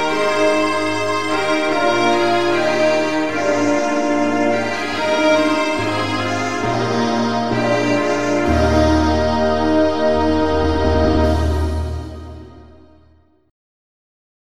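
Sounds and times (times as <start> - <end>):
national anthem: 0.0 - 13.1.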